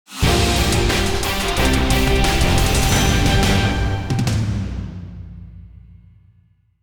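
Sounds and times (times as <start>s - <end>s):
positive musical sting: 0.1s - 4.6s.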